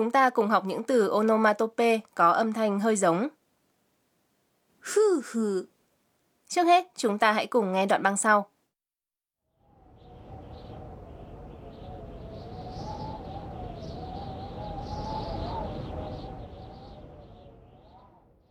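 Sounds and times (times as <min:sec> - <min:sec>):
speech: 0:00.0 - 0:03.4, 0:04.8 - 0:05.7, 0:06.5 - 0:08.5
strong wind blowing: 0:09.6 - 0:18.4.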